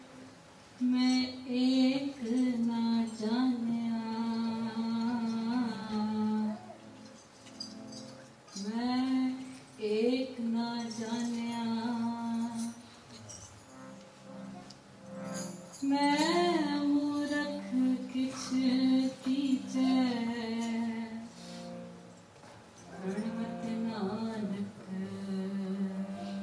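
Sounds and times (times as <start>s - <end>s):
Keertan devotional singing: 0.8s - 6.9s, 8.5s - 12.9s, 15.8s - 21.7s, 22.9s - 26.4s.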